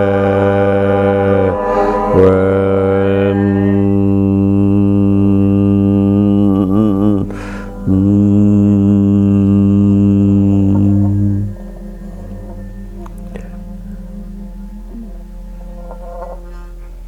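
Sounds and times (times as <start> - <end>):
chanting: 0.2 - 12.5.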